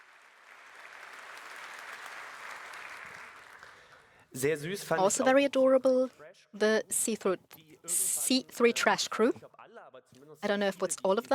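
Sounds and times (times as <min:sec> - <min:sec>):
crowd clapping: 0:00.0 - 0:04.3
speech: 0:04.3 - 0:09.5, 0:10.3 - 0:11.3.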